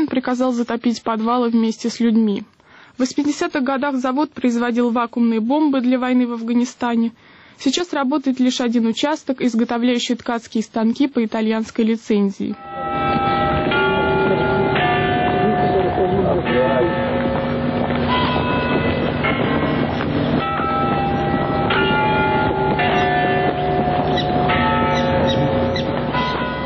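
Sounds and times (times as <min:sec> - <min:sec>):
speech: 0:00.2 - 0:12.7
Nevyansk Tower clock bells striking: 0:12.6 - 0:26.6.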